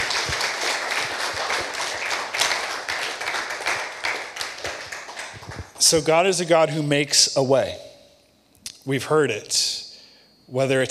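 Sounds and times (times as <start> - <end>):
audience hand clap of praise: 0.0 - 6.0
speech: 5.9 - 7.9, 8.8 - 9.8, 10.5 - 10.8.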